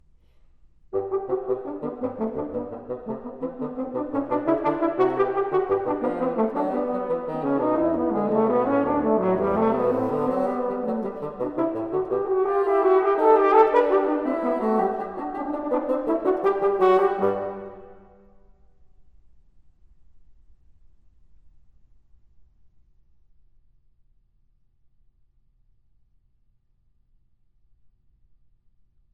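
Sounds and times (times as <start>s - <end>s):
horn and bassoon duet: 0.9s - 18.3s.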